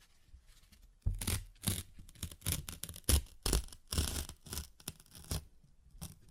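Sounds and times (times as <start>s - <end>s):
paper torn and ripped: 1.1s - 5.4s.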